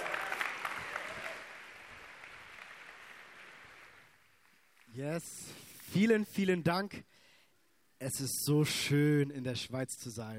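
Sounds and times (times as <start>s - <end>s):
audience applause: 0.0s - 5.0s
speech: 5.0s - 7.2s, 8.0s - 10.3s.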